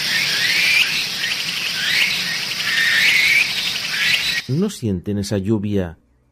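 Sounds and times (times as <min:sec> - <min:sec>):
bird calls in bright whistled chirps: 0:00.0 - 0:04.7
mosquitoes and insects of the Amazon jungle buzzing: 0:00.0 - 0:04.7
speech: 0:04.5 - 0:06.0.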